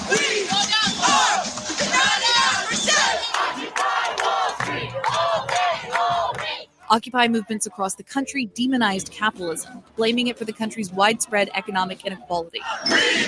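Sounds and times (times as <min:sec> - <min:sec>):
protest crowd shouting in the streets: 0:00.0 - 0:07.9, 0:11.4 - 0:13.2
crowd chanting slogans: 0:00.0 - 0:08.0, 0:09.0 - 0:13.2
speech: 0:06.9 - 0:13.2.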